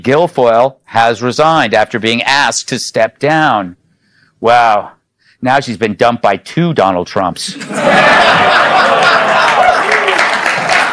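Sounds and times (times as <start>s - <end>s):
speech: 0.0s - 3.8s, 4.4s - 9.3s
laughter: 7.5s - 10.9s
lively crowd clapping and murmuring: 9.4s - 10.9s.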